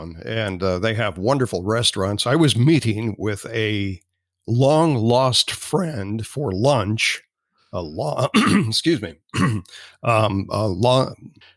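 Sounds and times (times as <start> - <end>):
speech: 0.0 - 11.5
man clearing throat: 8.2 - 9.8.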